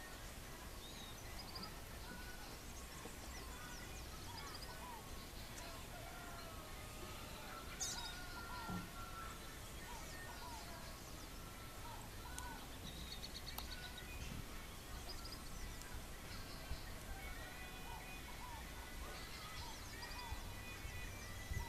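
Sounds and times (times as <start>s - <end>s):
Thraupis palmarum calling: 0.0s - 21.6s.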